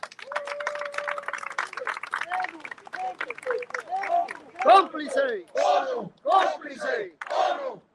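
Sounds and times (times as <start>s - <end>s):
crowd applause at a protest: 0.0s - 4.8s
speech: 5.0s - 7.7s.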